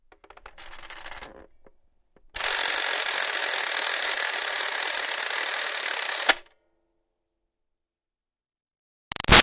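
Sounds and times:
toy toaster countdown timer ticking: 2.4s - 6.4s.

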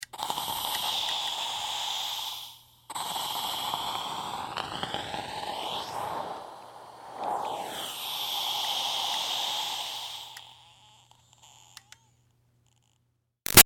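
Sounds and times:
steam iron releasing steam: 0.2s - 10.6s.

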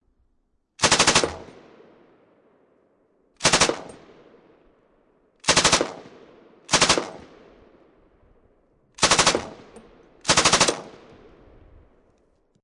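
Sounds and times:
M249 machine gun automatic fire: 0.8s - 1.6s, 3.4s - 4.0s, 5.4s - 6.1s, 6.7s - 7.3s, 9.0s - 11.0s.

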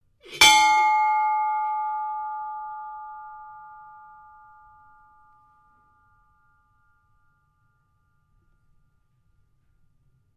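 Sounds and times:
ship's bell ringing on a dumb hopper barge: 0.4s - 8.1s.

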